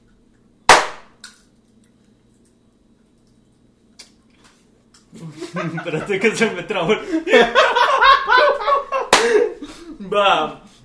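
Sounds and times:
single hand clap for syncing: 0.7s - 1.1s, 9.1s - 9.3s
laughter: 5.1s - 10.0s
speech: 5.2s - 7.8s, 10.1s - 10.6s.

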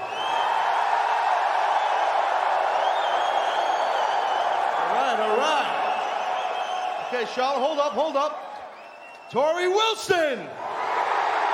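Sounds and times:
thin whistles from crowd: 0.0s - 7.6s, 8.4s - 9.7s
large wrestling arena crowd roaring: 0.0s - 8.9s, 9.9s - 11.5s
speech: 7.2s - 8.4s, 9.3s - 10.6s.

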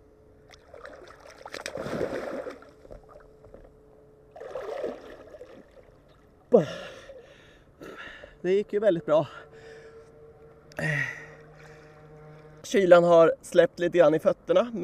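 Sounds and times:
water splashing as a person dives into cold water and swims under a raft: 0.5s - 3.7s, 4.3s - 6.5s
speech: 6.6s - 6.9s, 8.4s - 9.4s, 12.7s - 14.8s.

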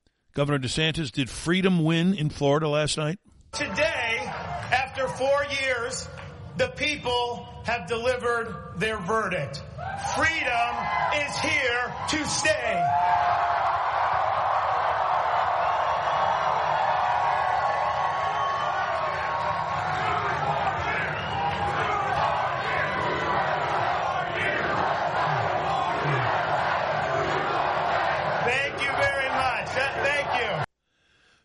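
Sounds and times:
speech: 0.4s - 4.1s, 5.0s - 13.7s
large crowd chanting: 13.0s - 30.7s.

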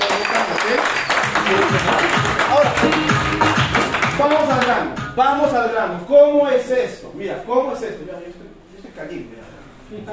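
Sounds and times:
crowd applause: 0.0s - 4.4s
speech: 5.2s - 8.4s, 9.0s - 10.1s.

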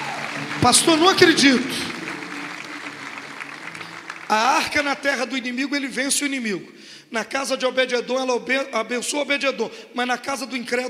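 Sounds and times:
audience applauding: 0.0s - 5.5s
speech: 0.6s - 2.0s, 4.3s - 10.8s.

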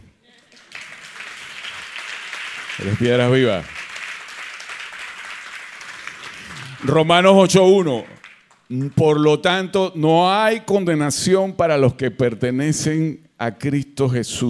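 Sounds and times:
crowd applause: 0.3s - 9.2s
speech: 2.8s - 3.8s, 6.8s - 14.4s
person speaking loudly: 6.8s - 14.4s.

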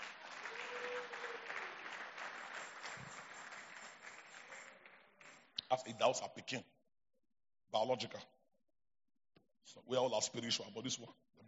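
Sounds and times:
audience clapping: 0.0s - 5.6s
speech: 5.7s - 6.8s, 7.7s - 8.4s, 9.7s - 11.4s.

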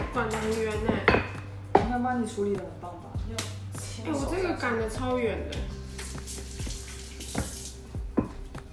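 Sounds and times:
speech: 0.1s - 1.2s, 2.0s - 6.4s
water running from a tap at a sink while washing hands: 5.7s - 8.5s.

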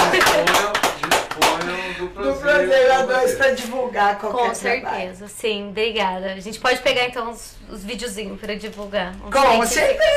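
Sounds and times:
audience applause: 0.0s - 1.8s
speech: 2.6s - 10.1s.

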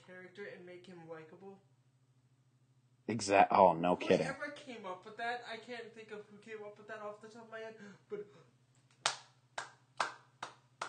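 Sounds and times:
faint low hum: 0.0s - 10.8s
speech: 0.1s - 1.8s, 3.1s - 8.5s
sharp hand claps: 8.9s - 10.8s.

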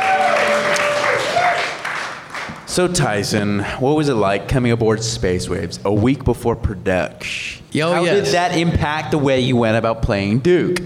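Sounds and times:
audience applause and cheering: 0.0s - 2.7s
speech: 2.8s - 10.8s.

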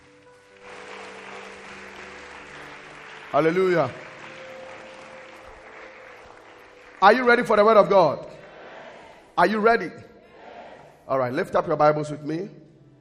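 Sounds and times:
audience clapping: 0.0s - 9.2s
speech: 3.3s - 4.0s, 7.0s - 8.3s, 9.4s - 10.1s, 11.1s - 12.6s.

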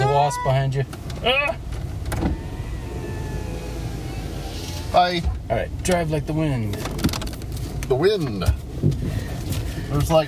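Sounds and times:
speech: 0.3s - 2.3s, 4.9s - 7.1s, 7.9s - 10.2s
car electric window whirring: 2.0s - 5.3s.

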